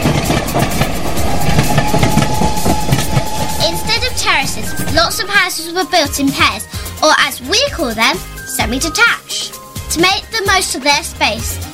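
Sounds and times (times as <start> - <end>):
train clattering along railway tracks: 0.0 - 5.8
speech: 5.6 - 11.7.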